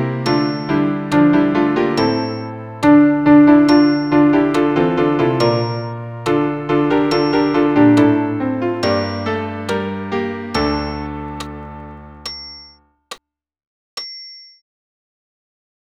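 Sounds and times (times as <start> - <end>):
choir singing a Gloria and Amen: 0.0 - 11.6.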